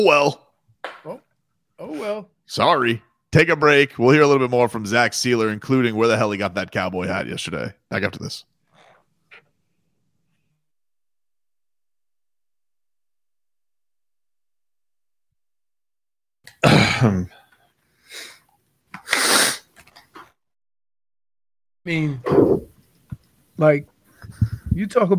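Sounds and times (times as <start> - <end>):
speech: 0.0 - 0.4, 1.0 - 1.2, 1.8 - 8.5, 16.6 - 17.4, 21.8 - 22.7, 23.6 - 23.9, 24.8 - 25.1
person clearing throat: 16.6 - 17.3.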